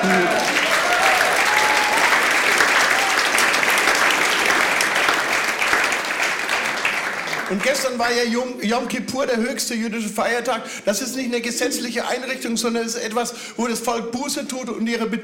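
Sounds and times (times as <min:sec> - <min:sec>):
audience applause: 0:00.0 - 0:08.0
speech: 0:07.5 - 0:15.2.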